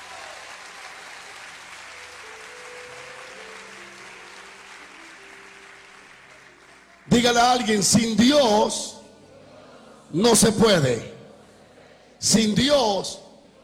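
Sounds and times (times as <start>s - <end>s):
applause: 0.0s - 8.0s
speech: 7.1s - 9.0s, 10.1s - 11.1s, 12.2s - 13.2s.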